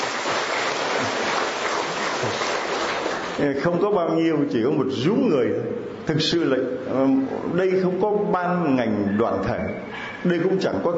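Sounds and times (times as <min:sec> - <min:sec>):
audience applause: 0:00.0 - 0:03.4
speech: 0:03.4 - 0:10.9.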